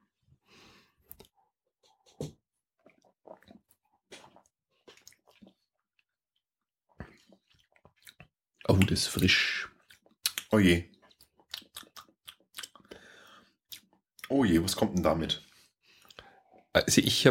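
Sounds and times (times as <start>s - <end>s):
first sip of Hallerndorfer Landbier Hell beer: 2.8s - 6.2s, 6.9s - 13.0s
speech: 8.9s - 9.7s, 10.5s - 10.9s, 14.4s - 15.5s, 16.9s - 17.3s.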